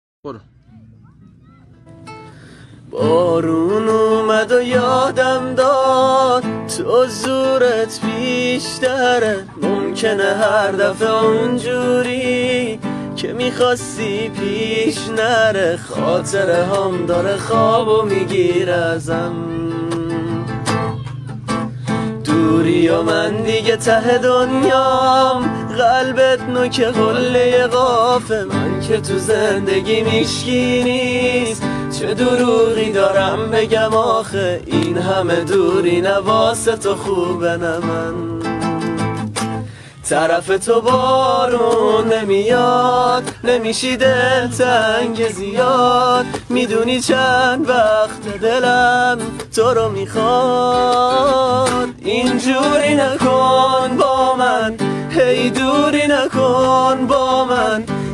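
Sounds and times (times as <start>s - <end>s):
guitar: 0.2s - 58.1s.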